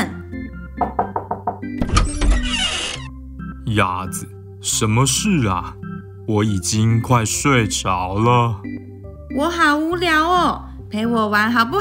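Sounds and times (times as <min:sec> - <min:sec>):
knocking on a door: 0:00.7 - 0:02.4
speech: 0:03.7 - 0:11.8.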